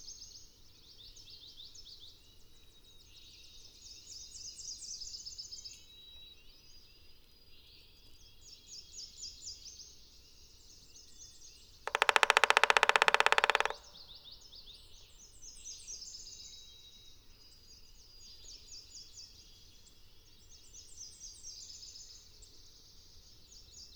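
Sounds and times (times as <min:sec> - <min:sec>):
Black-backed woodpecker drumming: 0:11.9 - 0:14.1.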